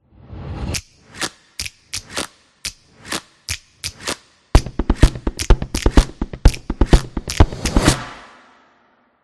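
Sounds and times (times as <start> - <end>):
snapping sounds: 0.7 - 7.9.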